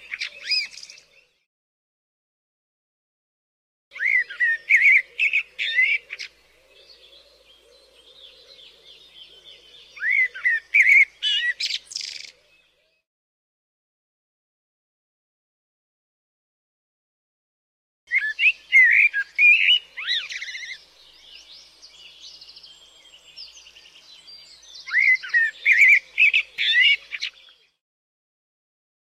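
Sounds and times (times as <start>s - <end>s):
blackbird singing: 0.0s - 1.5s, 3.9s - 13.0s, 18.1s - 27.8s.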